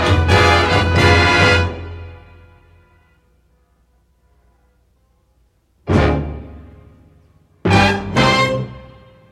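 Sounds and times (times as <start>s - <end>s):
stereo band track: 0.0s - 2.7s, 5.9s - 7.0s, 7.6s - 9.2s.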